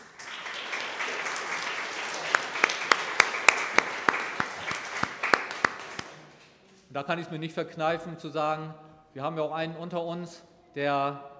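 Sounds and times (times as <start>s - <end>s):
audience applause: 0.0s - 6.4s
speech: 7.0s - 11.3s.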